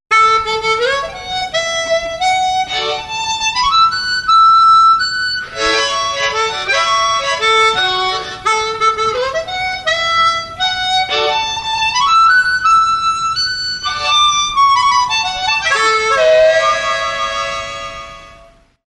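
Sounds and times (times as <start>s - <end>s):
short bluegrass harmonica: 0.1s - 18.7s.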